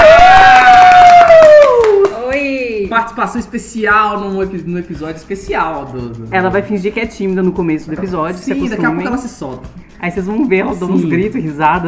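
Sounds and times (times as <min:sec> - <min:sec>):
clapping: 0:00.0 - 0:02.6
speech: 0:03.1 - 0:11.8.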